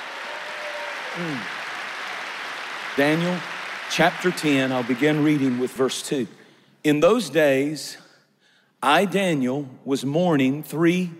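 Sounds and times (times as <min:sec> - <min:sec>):
church congregation clapping their hands in praise: 0:00.0 - 0:06.2
short vocal shout: 0:00.6 - 0:01.6
speech: 0:01.2 - 0:01.6, 0:03.0 - 0:08.0, 0:08.8 - 0:11.1.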